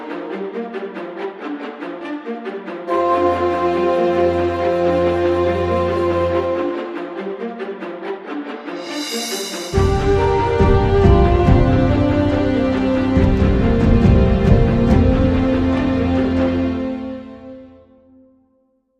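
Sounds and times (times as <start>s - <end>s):
epic shakuhachi: 2.9s - 7.4s, 8.6s - 17.0s.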